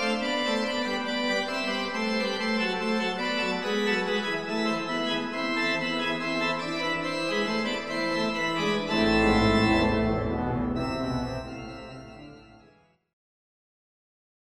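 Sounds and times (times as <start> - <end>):
organ playing a toccata: 0.0 - 12.9.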